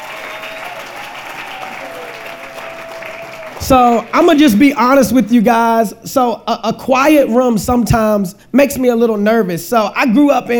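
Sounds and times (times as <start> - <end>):
audience applause: 0.0 - 4.6
speech: 3.7 - 10.5.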